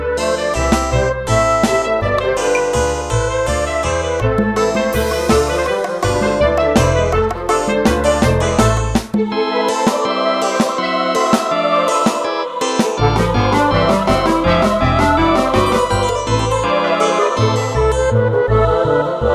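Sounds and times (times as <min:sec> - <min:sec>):
dance music: 0:00.2 - 0:19.2.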